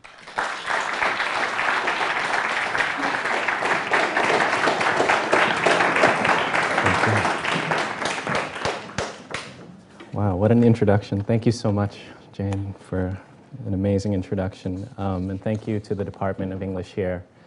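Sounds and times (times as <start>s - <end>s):
audience applause welcoming a visiting writer at Colgate University: 0.0s - 9.6s
speech: 10.5s - 17.3s.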